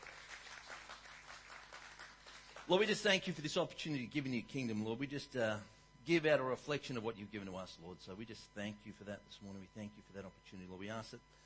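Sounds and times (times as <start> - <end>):
audience clapping: 0.0 - 3.1
speech: 2.7 - 11.4.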